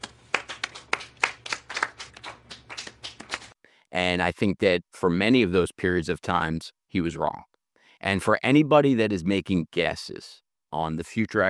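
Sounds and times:
clapping: 0:00.0 - 0:03.6
speech: 0:04.0 - 0:11.4.

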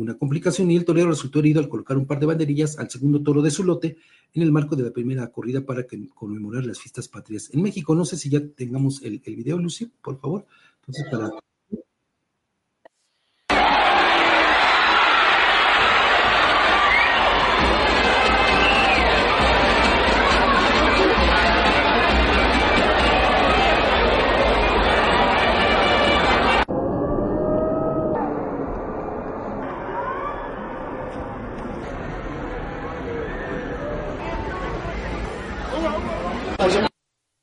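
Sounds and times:
speech: 0:00.0 - 0:11.8
bullring crowd voices during a goring at a Mexican bullfight: 0:13.5 - 0:36.9.

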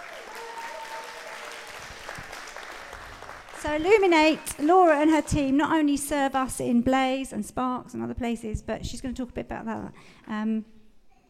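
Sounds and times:
audience cheering: 0:00.0 - 0:03.5
applause: 0:00.0 - 0:05.5
speech: 0:03.6 - 0:10.8.

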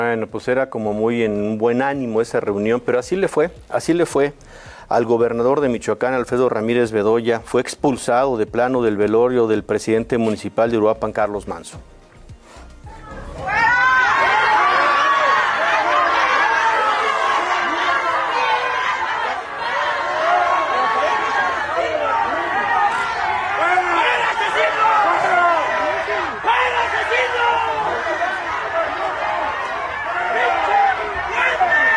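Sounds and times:
speech: 0:00.0 - 0:12.0
large crowd shouting and chanting out: 0:12.8 - 0:31.9.

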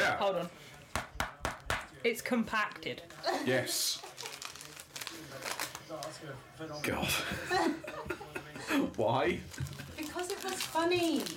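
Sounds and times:
speech: 0:00.2 - 0:00.7, 0:02.0 - 0:04.2, 0:05.3 - 0:09.8, 0:10.4 - 0:11.3
paper crinkling as a Christmas present is unwrapped: 0:03.9 - 0:06.4, 0:09.4 - 0:11.3
laughter: 0:07.1 - 0:08.9.

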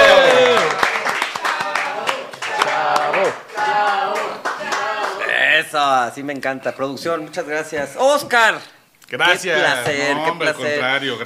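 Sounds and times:
audience applause for a guest being introduced: 0:00.0 - 0:05.3
speech: 0:05.7 - 0:11.2.

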